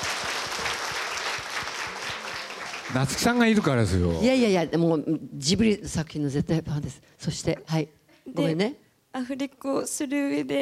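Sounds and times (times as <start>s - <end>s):
audience applause: 0.0s - 4.2s
speech: 2.9s - 10.6s.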